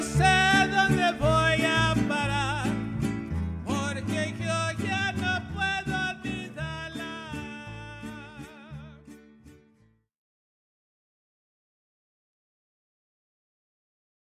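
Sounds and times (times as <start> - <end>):
mariachi music: 0.0 - 10.1.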